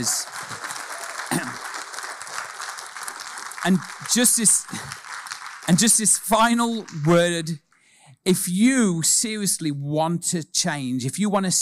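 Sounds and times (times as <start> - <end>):
speech: 0.0 - 0.5, 3.6 - 5.0, 5.7 - 7.6, 8.2 - 11.6
round of applause: 0.0 - 7.5.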